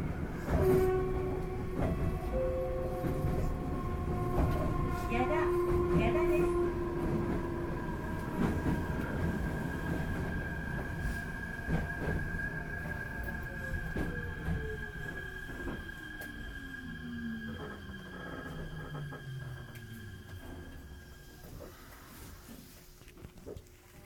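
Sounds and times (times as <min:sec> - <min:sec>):
Meitetsu Seto Line 4000 series train with IGBT-VVVF inverter: 0:00.0 - 0:22.7.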